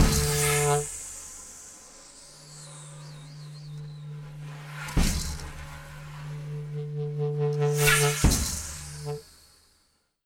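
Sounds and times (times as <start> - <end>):
instrumental interlude: 0.0 - 1.1, 2.7 - 9.3.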